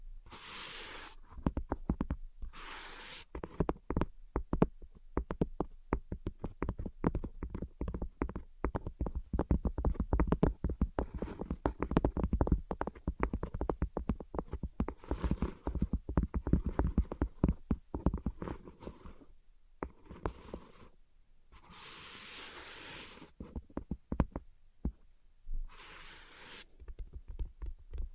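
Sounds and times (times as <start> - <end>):
invisible tapping: 1.3 - 2.2, 3.3 - 18.6, 23.5 - 25.0.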